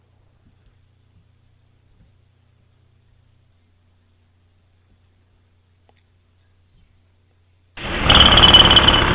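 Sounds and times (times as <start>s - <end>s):
jackhammer: 7.8s - 9.1s.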